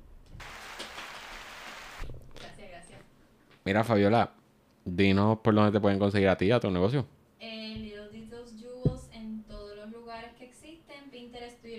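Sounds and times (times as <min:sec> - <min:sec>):
applause: 0:00.4 - 0:01.9
speech: 0:03.7 - 0:07.2.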